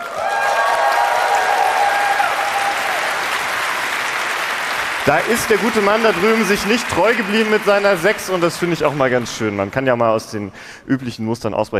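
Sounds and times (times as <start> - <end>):
audience applause: 0.0 - 10.5
speech: 5.0 - 11.7.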